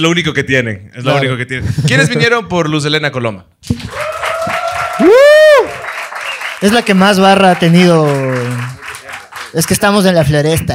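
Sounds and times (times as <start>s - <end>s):
speech: 0.0s - 4.1s, 5.0s - 5.8s, 6.6s - 8.8s, 9.5s - 10.7s
audience applause: 3.8s - 10.2s.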